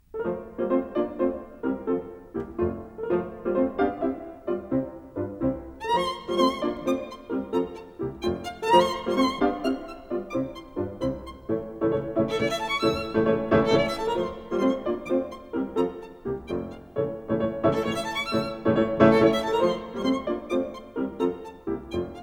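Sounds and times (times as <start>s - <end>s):
violin sonata scherzo: 0.0s - 22.2s.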